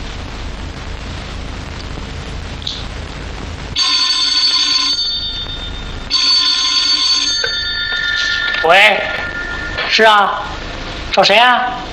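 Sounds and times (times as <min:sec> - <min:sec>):
telephone ringing: 0:03.8 - 0:10.8
speech: 0:08.7 - 0:09.1, 0:09.9 - 0:10.5, 0:11.2 - 0:11.8.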